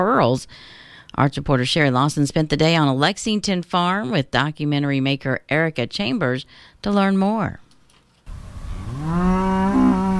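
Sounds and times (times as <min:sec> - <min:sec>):
speech: 0:00.0 - 0:07.6
Marigold the cow mooing in a dairy farm pasture in Lexington: 0:08.7 - 0:10.1.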